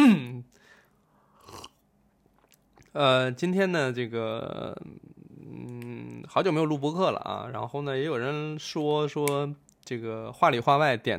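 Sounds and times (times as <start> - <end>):
man clearing throat: 0.0 - 0.4
speech: 2.9 - 11.1.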